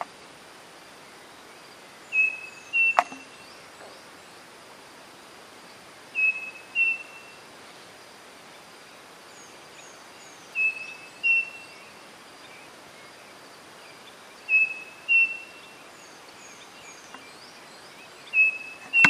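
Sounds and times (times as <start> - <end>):
background hiss: 0.0 - 19.0
bird whistled calls: 2.1 - 3.4, 6.2 - 7.4, 10.6 - 11.8, 14.5 - 15.7, 16.5 - 19.0
sharp click: 18.8 - 19.0.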